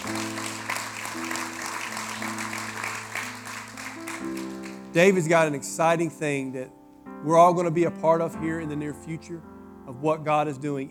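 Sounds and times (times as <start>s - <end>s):
audience clapping hands: 0.0s - 5.7s
speech: 5.0s - 10.8s.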